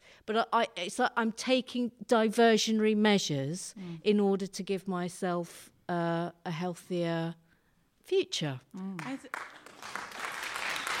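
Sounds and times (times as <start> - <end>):
speech: 0.3 - 7.4, 8.1 - 9.6
audience applause: 9.0 - 10.9.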